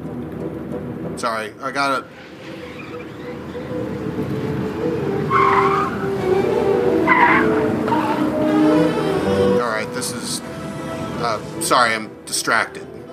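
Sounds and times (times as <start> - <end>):
car driving on a freeway at about 50 miles an hour: 0.0 - 13.1
speech: 1.2 - 2.4, 11.2 - 12.9
tire squeals: 2.0 - 12.6.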